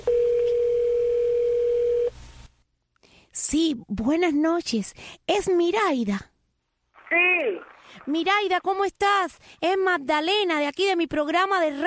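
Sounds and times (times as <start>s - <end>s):
telephone dial tone: 0.0s - 2.1s
speech: 3.4s - 6.3s, 7.1s - 11.8s.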